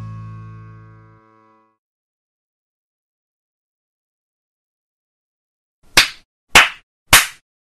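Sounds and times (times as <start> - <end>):
hand clapping: 5.9 - 7.4.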